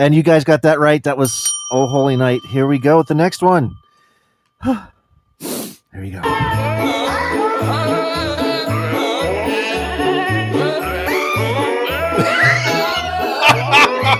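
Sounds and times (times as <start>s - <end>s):
speech: 0.0s - 3.8s, 4.6s - 4.9s, 6.0s - 7.0s
goats bleating a Christmas song tune: 6.2s - 13.3s
laughter: 10.7s - 14.1s.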